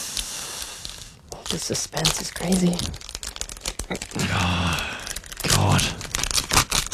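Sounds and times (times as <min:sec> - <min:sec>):
paper envelope tearing and crinkling open for a prize reveal: 0:01.4 - 0:06.9
speech: 0:01.5 - 0:03.1, 0:03.9 - 0:05.0.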